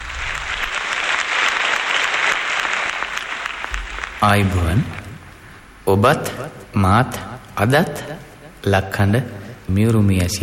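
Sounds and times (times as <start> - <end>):
audience applause welcoming a veteran singer onto a concert stage: 0.0 - 5.2
speech: 4.2 - 5.0, 5.9 - 10.4.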